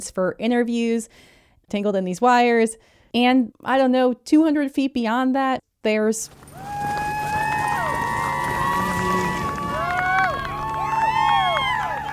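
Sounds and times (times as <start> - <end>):
speech: 0.0 - 6.7
outdoor crowd cheering: 6.3 - 12.1.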